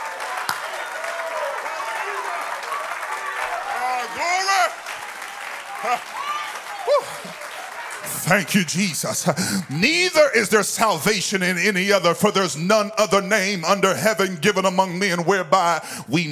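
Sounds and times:
audience clapping hands: 0:00.0 - 0:11.6
speech: 0:05.8 - 0:06.2, 0:08.3 - 0:16.3.

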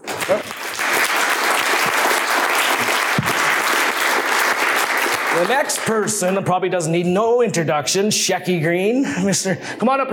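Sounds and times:
audience applause: 0:00.0 - 0:06.4
speech: 0:00.3 - 0:00.6, 0:05.4 - 0:10.1.

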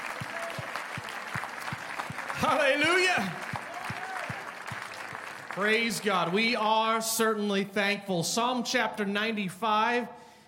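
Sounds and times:
audience hand clapping: 0:00.0 - 0:07.0
speech: 0:02.4 - 0:03.4, 0:05.6 - 0:10.2.

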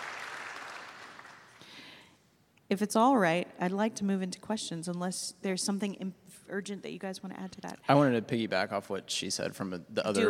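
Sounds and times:
applause from an audience at a discussion event: 0:00.0 - 0:02.0
speech: 0:02.7 - 0:10.2.

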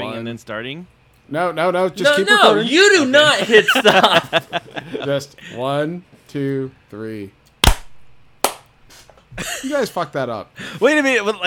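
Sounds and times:
speech: 0:00.0 - 0:07.4, 0:09.4 - 0:11.4
laughter: 0:03.2 - 0:05.3
hand claps for recording sync: 0:08.4 - 0:08.7.

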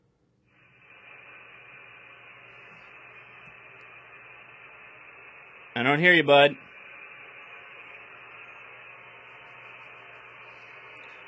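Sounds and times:
faint low hum: 0:00.0 - 0:11.2
ham radio transmission static hiss: 0:00.5 - 0:11.2
speech: 0:05.8 - 0:06.7.

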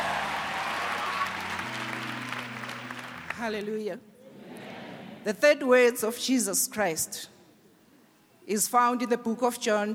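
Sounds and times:
church congregation applause: 0:00.0 - 0:03.7
speech: 0:03.4 - 0:04.1, 0:05.2 - 0:07.3, 0:08.5 - 0:09.9.

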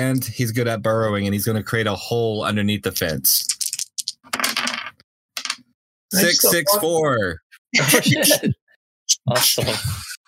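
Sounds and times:
speech: 0:00.0 - 0:03.6, 0:06.1 - 0:08.6, 0:09.2 - 0:10.2
dice rattling across a hard surface: 0:03.4 - 0:05.6
laughter: 0:06.2 - 0:06.9, 0:07.8 - 0:08.6, 0:09.2 - 0:10.2.

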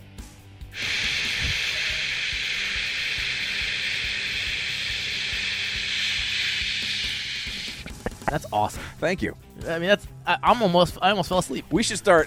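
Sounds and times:
voices imitating white noise hiss: 0:00.8 - 0:08.7
speech: 0:08.3 - 0:12.2.

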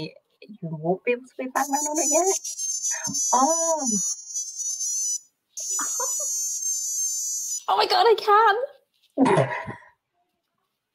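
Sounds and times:
speech: 0:00.0 - 0:04.2, 0:05.6 - 0:06.4, 0:07.7 - 0:09.8
electronic device beeping: 0:01.6 - 0:07.7.

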